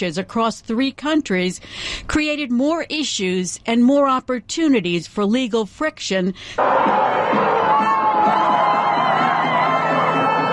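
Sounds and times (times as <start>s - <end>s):
speech: 0.0s - 7.9s
crowd cheering in Madrid after World Cup final win: 6.6s - 10.5s.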